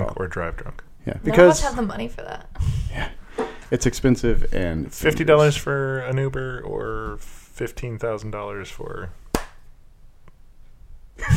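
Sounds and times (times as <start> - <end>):
speech: 0.1 - 9.2
single hand clap: 9.3 - 9.6.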